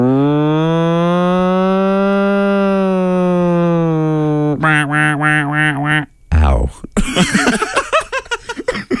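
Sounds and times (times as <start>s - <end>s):
voice imitating a fire truck siren: 0.0s - 6.6s
laughter: 7.0s - 8.9s.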